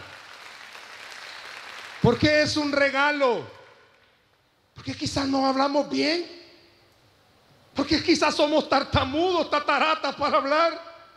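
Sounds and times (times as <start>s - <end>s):
crowd clapping: 0.0s - 2.5s
speech: 2.1s - 3.6s, 4.8s - 6.4s, 7.8s - 10.9s.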